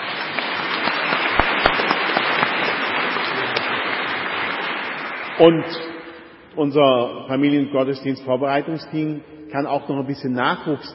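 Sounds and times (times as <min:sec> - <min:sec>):
audience applauding: 0:00.0 - 0:05.7
speech: 0:05.4 - 0:05.9, 0:06.6 - 0:10.9.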